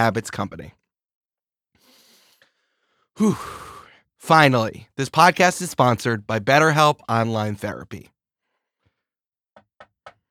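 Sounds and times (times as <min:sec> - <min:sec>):
speech: 0:00.0 - 0:00.8, 0:03.2 - 0:08.1
knocks on a door: 0:09.6 - 0:10.2.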